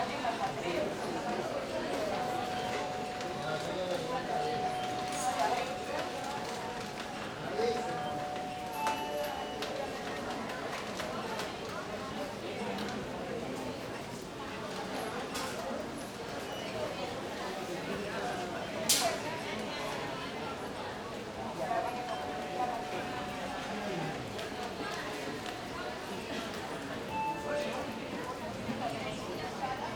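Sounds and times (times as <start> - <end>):
murmur of people in a sanatorium entrance hall: 0.0 - 29.9
call bells ringing in a sanatorium entrance hall: 1.9 - 11.4, 21.6 - 25.3, 27.1 - 28.4.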